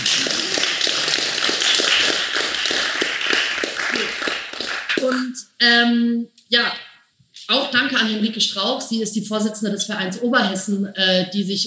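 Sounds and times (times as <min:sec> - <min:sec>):
audience clapping together: 0:00.0 - 0:05.4
speech: 0:05.6 - 0:06.8, 0:07.5 - 0:11.6.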